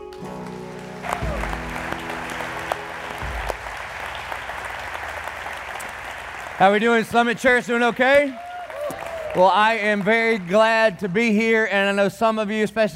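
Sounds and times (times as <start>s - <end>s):
held low musical chord: 0.0s - 4.4s
church congregation applauding to welcome a guest preacher: 0.0s - 12.0s
speech: 6.6s - 8.4s, 9.4s - 12.9s.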